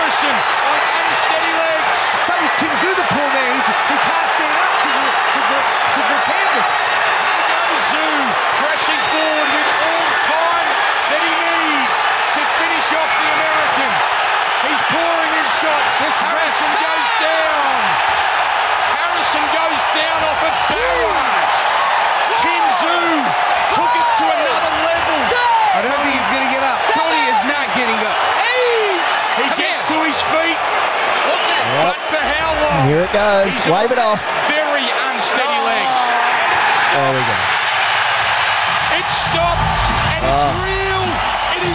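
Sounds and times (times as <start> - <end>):
boxing arena crowd roaring: 0.0 - 41.7
speech: 33.2 - 34.4, 37.0 - 37.5.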